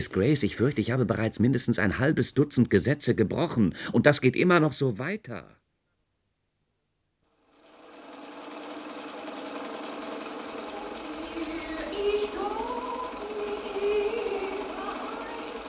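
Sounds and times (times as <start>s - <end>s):
speech: 0.0s - 5.6s
sewing machine stitching curtains: 7.4s - 15.6s.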